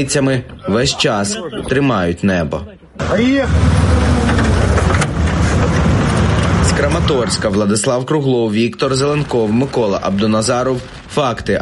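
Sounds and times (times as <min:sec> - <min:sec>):
speech: 0:00.0 - 0:04.0, 0:06.8 - 0:11.6
car driving off: 0:03.0 - 0:07.9.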